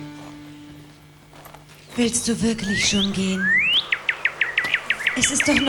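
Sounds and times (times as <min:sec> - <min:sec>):
nightingale song: 0:01.8 - 0:05.6
speech: 0:02.0 - 0:03.7, 0:05.2 - 0:05.6.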